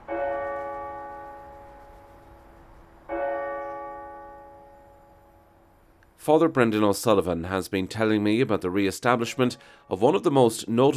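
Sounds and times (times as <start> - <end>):
automated cathedral bell chimes: 0.0 - 5.9
speech: 6.3 - 10.9.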